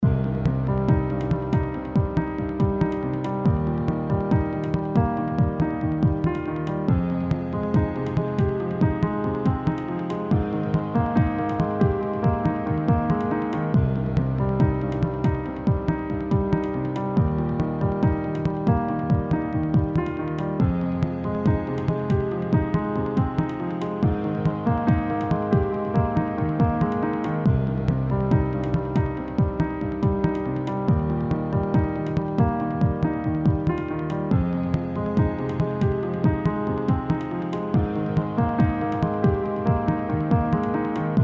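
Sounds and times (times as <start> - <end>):
minimal musical riff: 0.0 - 41.2.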